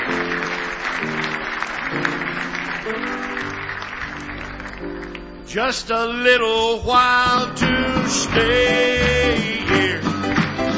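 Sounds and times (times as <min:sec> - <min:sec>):
audience hand-clapping applause: 0:00.0 - 0:05.4, 0:07.7 - 0:10.7
speech: 0:05.5 - 0:10.0.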